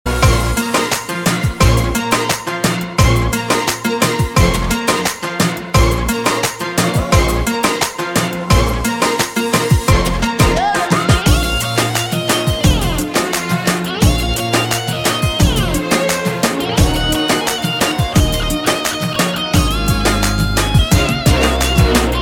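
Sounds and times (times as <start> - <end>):
Arabic music: 0.1 - 22.2.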